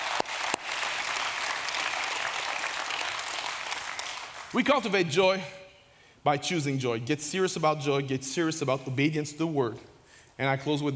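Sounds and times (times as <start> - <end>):
audience clapping: 0.0 - 4.7
speech: 4.5 - 5.6, 6.2 - 10.9.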